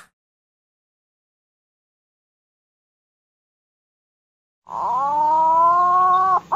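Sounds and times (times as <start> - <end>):
green pigeon whistling: 4.8 - 6.5.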